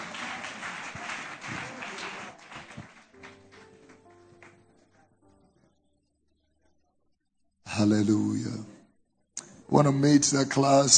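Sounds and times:
audience clapping: 0:00.0 - 0:05.0
speech: 0:07.8 - 0:08.8, 0:09.7 - 0:10.9.

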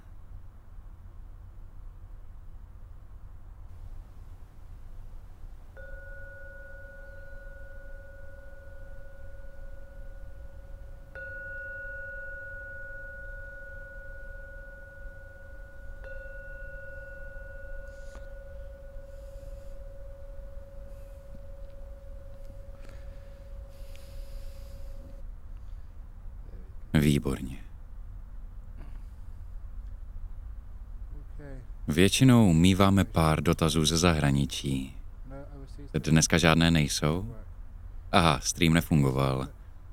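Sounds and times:
low hum: 0:00.0 - 0:39.9
meditation bell ringing: 0:05.4 - 0:25.2
speech: 0:27.0 - 0:27.7, 0:32.0 - 0:35.0, 0:35.9 - 0:37.4, 0:38.1 - 0:39.6.

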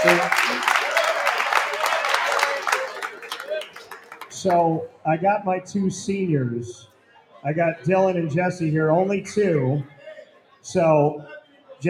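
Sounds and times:
crowd applause: 0:00.0 - 0:04.6
speech: 0:04.4 - 0:10.0, 0:10.6 - 0:11.8.

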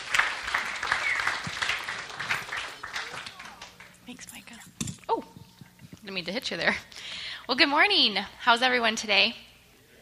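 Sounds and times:
audience applause welcoming a speaker to the stage: 0:00.0 - 0:04.0
speech: 0:06.1 - 0:06.9, 0:07.5 - 0:09.4.

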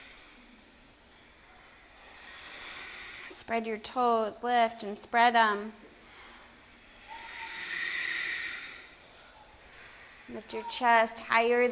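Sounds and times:
breath of fire yogic rapid nasal breathing: 0:01.2 - 0:03.5, 0:06.0 - 0:10.4
speech: 0:03.4 - 0:05.8, 0:10.4 - 0:11.7.

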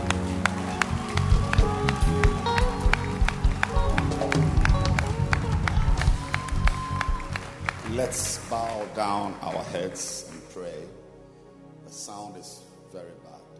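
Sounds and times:
audience clapping rhythmically: 0:00.0 - 0:10.6
speech: 0:08.1 - 0:10.8, 0:12.0 - 0:13.4.

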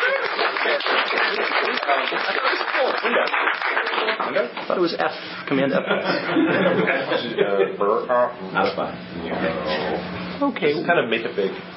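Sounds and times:
crowd clapping: 0:00.0 - 0:04.7
speech: 0:00.8 - 0:11.7
laughter: 0:05.7 - 0:07.9.

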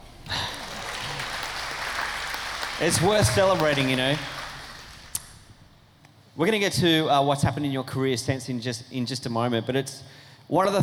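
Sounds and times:
laughter: 0:00.0 - 0:05.1
clapping: 0:00.0 - 0:05.7
speech: 0:02.8 - 0:04.4, 0:06.4 - 0:10.8.

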